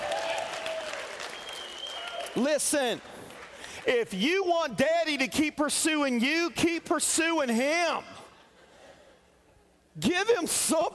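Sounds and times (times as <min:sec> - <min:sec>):
audience applause: 0:00.0 - 0:02.5
faint high whistle-like tones: 0:01.3 - 0:02.4
speech: 0:02.4 - 0:03.2, 0:03.8 - 0:08.2, 0:10.0 - 0:10.9.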